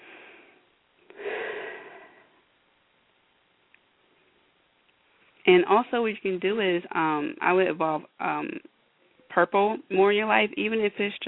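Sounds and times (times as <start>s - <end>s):
person breathing deeply during a spiritual cleansing session: 0.0s - 2.4s
speech: 5.5s - 8.7s, 9.3s - 11.2s.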